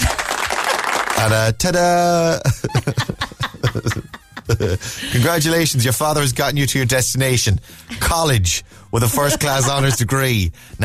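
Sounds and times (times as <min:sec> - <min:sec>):
crowd applause: 0:00.0 - 0:01.4
speech: 0:01.2 - 0:10.8
laughter: 0:02.2 - 0:05.6, 0:09.0 - 0:10.3.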